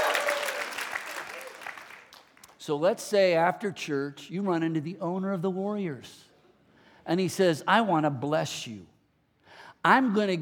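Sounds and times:
crowd cheering and applauding: 0:00.0 - 0:02.2
speech: 0:02.6 - 0:06.3, 0:07.1 - 0:08.9, 0:09.8 - 0:10.4.

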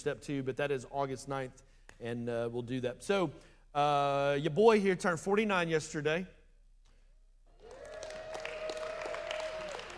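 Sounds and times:
speech: 0:00.0 - 0:06.4
audience applause: 0:07.6 - 0:09.9.

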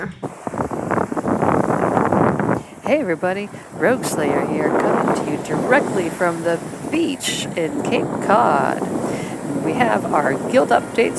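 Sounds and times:
speech: 0:00.0 - 0:00.2, 0:02.9 - 0:11.1
ocean waves at the beach: 0:00.0 - 0:11.1
wind at the beach: 0:00.0 - 0:11.1.

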